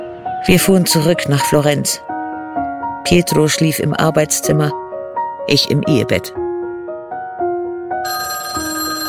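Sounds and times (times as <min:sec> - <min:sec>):
speech: 0:00.4 - 0:02.1, 0:03.0 - 0:04.8, 0:05.4 - 0:06.4
telephone ringing with bright electronic tonal notes: 0:08.0 - 0:09.0.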